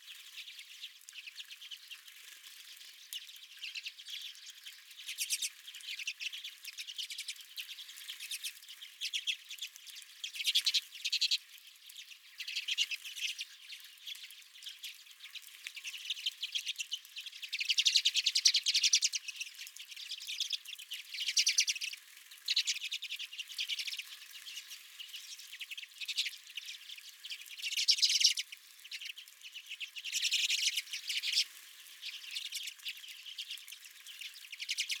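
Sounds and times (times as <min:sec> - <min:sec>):
redpoll flock twittering: 0:00.0 - 0:34.9.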